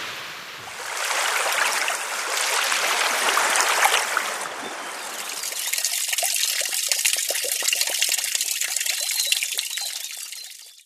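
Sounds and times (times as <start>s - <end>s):
relaxing water sounds: 0.0s - 10.8s.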